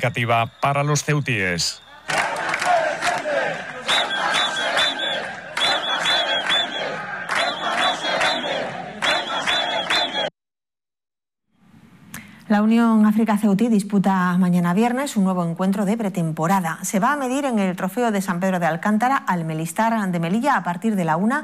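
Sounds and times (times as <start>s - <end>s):
speech: 0.0s - 2.2s, 12.5s - 21.4s
crowd chanting slogans during a race: 1.8s - 10.3s.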